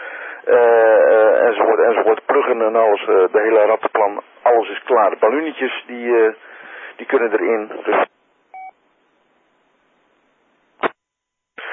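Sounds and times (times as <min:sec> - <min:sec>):
speech: 0:00.4 - 0:00.9, 0:01.6 - 0:08.0
low battery two-tone warning beep: 0:08.6 - 0:08.8.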